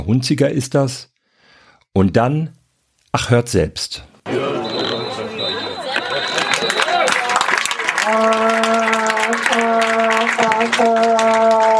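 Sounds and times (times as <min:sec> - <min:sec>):
speech: 0:00.0 - 0:01.1, 0:01.9 - 0:04.5
laughter: 0:04.3 - 0:09.6
stadium applause with crowd noise: 0:04.3 - 0:11.7.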